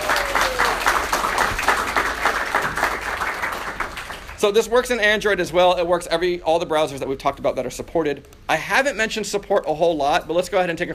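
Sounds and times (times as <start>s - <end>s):
audience applause: 0.0s - 4.4s
speech: 4.4s - 10.9s.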